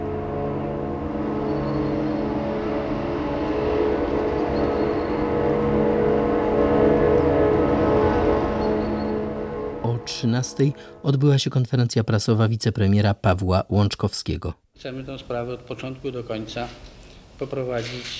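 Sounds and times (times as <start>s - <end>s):
ship sirens sounding in tribute to disaster victims: 0.0s - 11.2s
speech: 10.3s - 18.1s.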